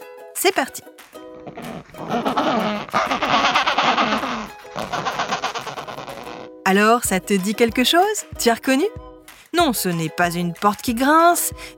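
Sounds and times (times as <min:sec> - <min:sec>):
speech: 0:00.4 - 0:02.3, 0:06.7 - 0:11.7
Adélie penguin calling with a harsh raspy braying voice: 0:01.3 - 0:06.5.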